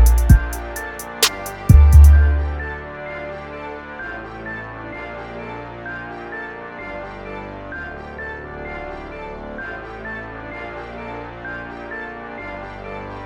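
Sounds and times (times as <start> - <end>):
instrumental music: 0.0 - 3.2.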